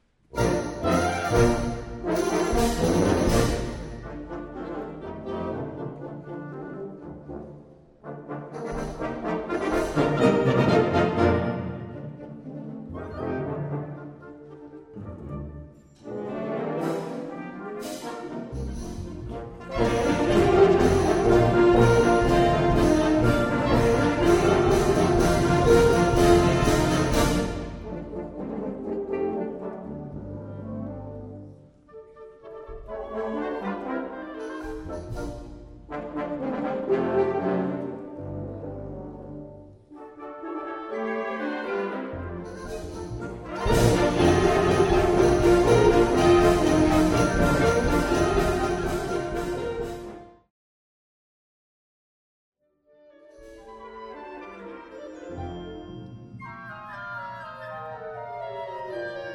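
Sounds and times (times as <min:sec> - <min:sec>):
joyful march music: 0:00.2 - 0:50.5.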